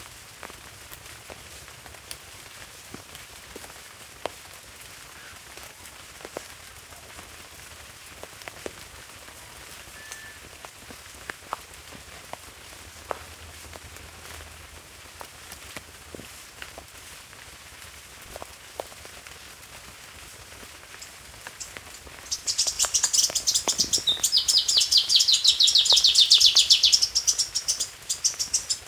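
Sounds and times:
black-crested warbler song of high sharp downslurred chips: 21.6s - 28.8s.

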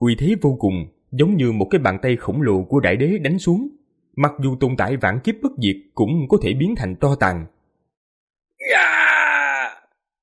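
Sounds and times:
speech: 0.0s - 7.6s, 8.6s - 9.0s
terrified anguished scream: 8.6s - 10.0s.

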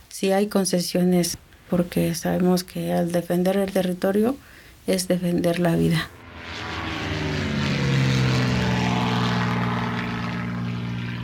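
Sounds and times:
speech: 0.2s - 6.7s
propeller drone of light aircraft flying over rural territory in Oaxaca: 6.1s - 11.2s.

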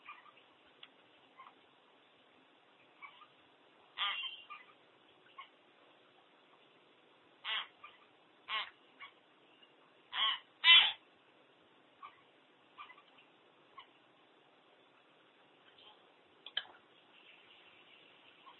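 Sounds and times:
common hill myna squawking: 0.0s - 0.4s, 3.0s - 3.4s, 4.0s - 5.5s, 7.4s - 9.2s, 10.1s - 11.0s, 12.0s - 13.1s.

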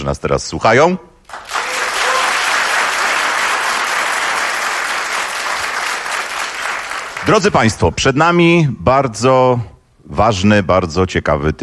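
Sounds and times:
speech: 0.0s - 1.1s, 7.3s - 11.6s
radio studio audience applauding: 1.3s - 7.6s.

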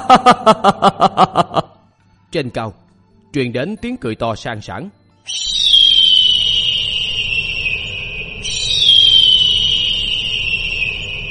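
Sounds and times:
laughter: 0.0s - 1.8s
speech: 0.1s - 1.7s, 2.3s - 5.6s
shrill cries of giant eagles: 5.3s - 11.2s.

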